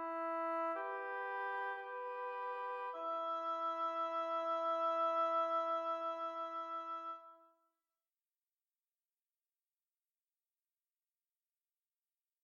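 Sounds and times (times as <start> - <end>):
oboe duet: 0.0 - 7.5.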